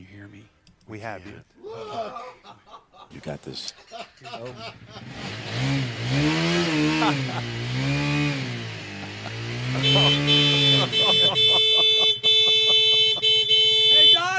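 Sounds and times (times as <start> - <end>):
speech: 0.2 - 8.6, 9.5 - 11.5
laughter: 1.6 - 5.7, 6.8 - 7.7, 8.9 - 14.1
motorcycle engine revving: 4.7 - 14.2.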